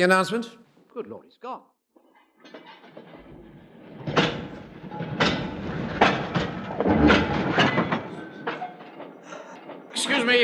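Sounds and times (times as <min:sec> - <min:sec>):
speech: 0:00.0 - 0:01.7, 0:10.0 - 0:10.4
metallic clanks and thuds from train carriages and doors: 0:02.4 - 0:10.0.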